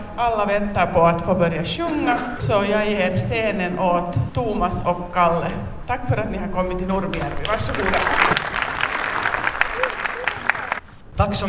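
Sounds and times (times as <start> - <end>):
speech: 0.2 - 8.5, 11.2 - 11.4
audience applause at a singing performance: 7.1 - 10.9.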